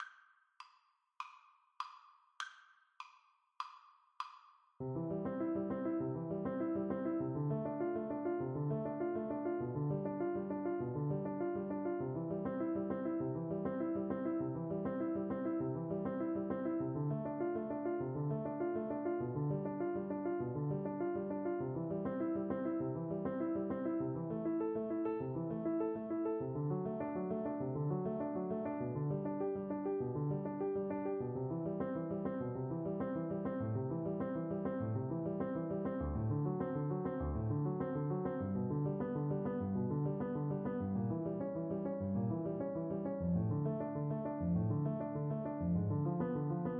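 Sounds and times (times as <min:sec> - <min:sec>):
piano duet: 0:04.8 - 0:46.7.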